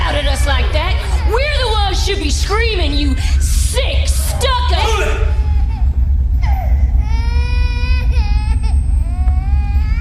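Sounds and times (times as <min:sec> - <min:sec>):
baby crying: 0:00.1 - 0:09.9.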